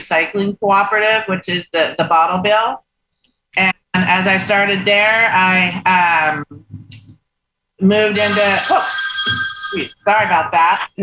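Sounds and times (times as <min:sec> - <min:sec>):
speech: 0:00.0 - 0:02.8, 0:03.6 - 0:06.6, 0:07.8 - 0:11.0
phone ringing with a tonal ringtone during a spoken interview: 0:08.1 - 0:10.8.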